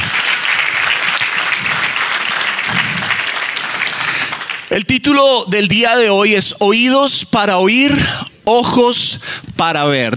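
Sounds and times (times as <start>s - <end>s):
audience applause: 0.0s - 4.7s
speech: 4.7s - 10.1s.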